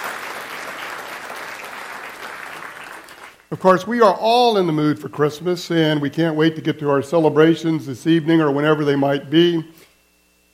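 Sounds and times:
audience applause: 0.0s - 3.4s
speech: 3.5s - 9.8s.

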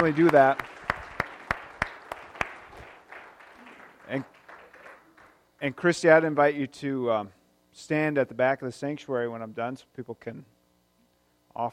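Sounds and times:
speech: 0.0s - 0.8s, 4.1s - 4.4s, 5.6s - 10.5s
sharp evenly spaced claps: 0.0s - 5.4s.

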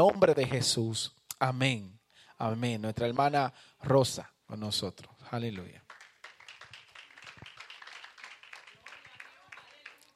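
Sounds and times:
speech: 0.0s - 5.8s
audience applause: 5.9s - 10.1s.

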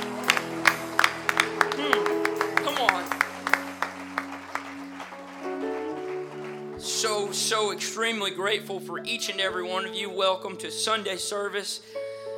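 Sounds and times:
audience hand clapping: 0.0s - 8.5s
sustained keyboard chords: 0.0s - 12.3s
speech: 7.3s - 12.0s.

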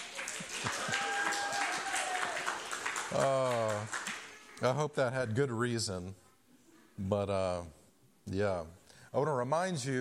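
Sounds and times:
audience clapping: 0.0s - 4.8s
speech: 3.1s - 4.0s, 4.6s - 6.2s, 7.0s - 9.9s.

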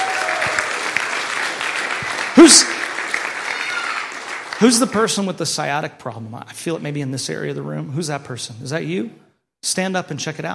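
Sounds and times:
audience applause: 0.0s - 5.2s
speech: 2.4s - 2.8s, 4.6s - 10.5s.

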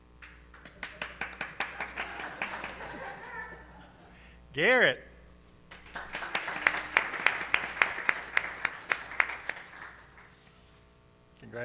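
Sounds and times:
scattered applause: 0.2s - 3.2s, 5.7s - 10.4s
rhythmic clapping: 0.2s - 3.3s, 5.7s - 10.4s
laughter: 1.5s - 4.3s
speech: 4.6s - 5.1s.

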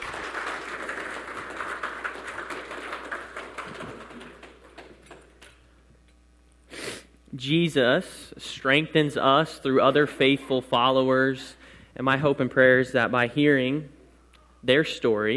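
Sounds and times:
audience applause: 0.0s - 5.6s
speech: 7.4s - 14.0s, 14.6s - 15.3s.

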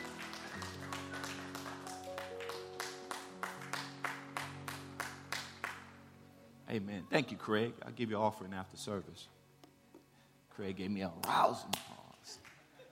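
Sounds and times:
audience clapping hands: 0.0s - 6.0s, 11.2s - 12.9s
speech: 6.7s - 9.4s, 10.6s - 12.0s.

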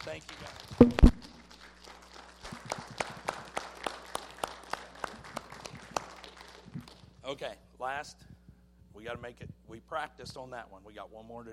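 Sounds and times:
speech: 0.0s - 1.2s, 7.9s - 8.3s, 9.0s - 11.5s
audience applauding: 0.0s - 7.0s.

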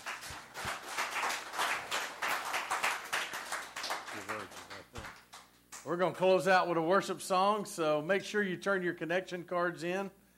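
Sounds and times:
audience applause: 0.0s - 5.4s
speech: 5.8s - 10.2s.

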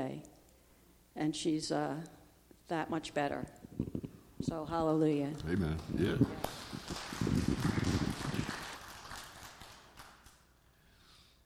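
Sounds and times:
speech: 1.2s - 7.5s
audience clapping: 5.4s - 10.5s.

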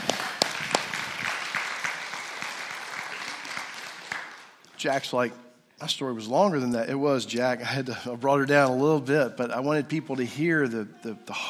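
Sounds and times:
crowd applauding: 0.0s - 4.6s
speech: 4.8s - 11.4s.

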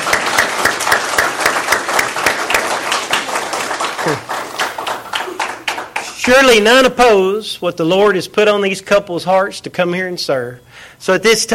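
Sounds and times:
audience applause: 0.0s - 6.3s
speech: 6.3s - 11.5s.

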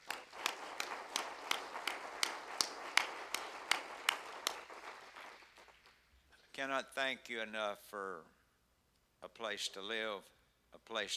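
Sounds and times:
audience clapping hands: 0.0s - 6.3s
speech: 6.6s - 8.4s, 9.3s - 11.1s.

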